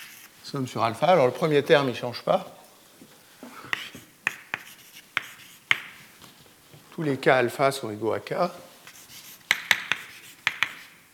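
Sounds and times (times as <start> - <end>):
speech: 0.5 - 2.6, 7.0 - 8.7
writing on a board during a maths lecture: 3.7 - 6.1, 8.9 - 11.0.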